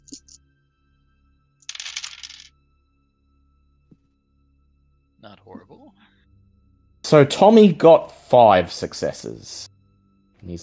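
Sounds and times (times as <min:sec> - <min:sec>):
dice clattering for a Vampire tabletop role-playing game: 0:00.0 - 0:00.4, 0:01.6 - 0:02.5
speech: 0:05.2 - 0:06.1, 0:07.1 - 0:09.7, 0:10.4 - 0:10.6.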